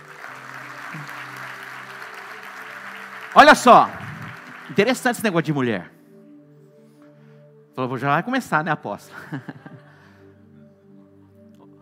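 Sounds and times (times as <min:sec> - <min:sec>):
crowd applauding: 0:00.0 - 0:05.7
low sustained musical tones: 0:00.0 - 0:11.7
speech: 0:03.3 - 0:04.0, 0:04.7 - 0:05.9, 0:07.8 - 0:09.7
laughter: 0:09.1 - 0:10.0.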